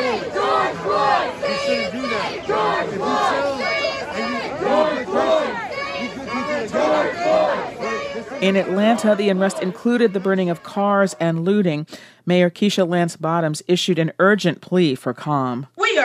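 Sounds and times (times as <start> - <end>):
large protest crowd chanting and shouting in unison: 0.0 - 11.8
speech: 8.4 - 16.0.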